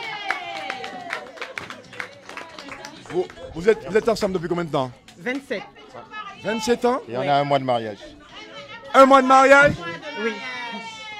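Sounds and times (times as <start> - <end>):
audience clapping in a steady rhythmic beat: 0.0 - 5.5
speech: 3.1 - 8.1, 9.0 - 10.5.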